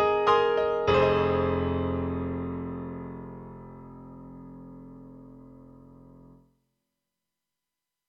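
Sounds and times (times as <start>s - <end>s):
Korg M3 thin bright grand piano: 0.0s - 6.4s.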